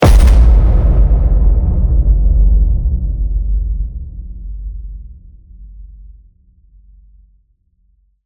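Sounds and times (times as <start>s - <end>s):
low sci-fi cinematic hit: 0.0s - 6.2s.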